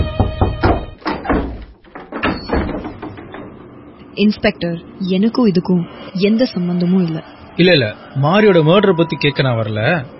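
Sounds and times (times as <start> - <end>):
knocking on a house door: 0.0 - 3.6
speech: 4.2 - 10.1.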